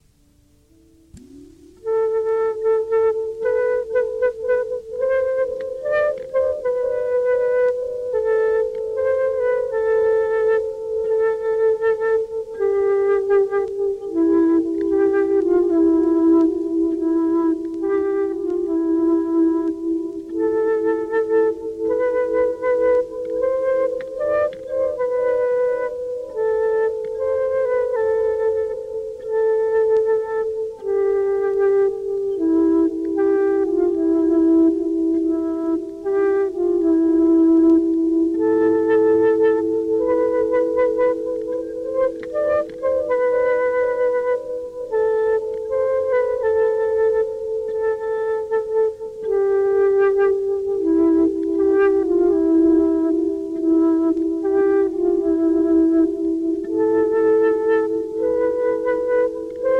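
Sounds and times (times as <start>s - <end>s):
flute arrangements: 0.0s - 59.7s.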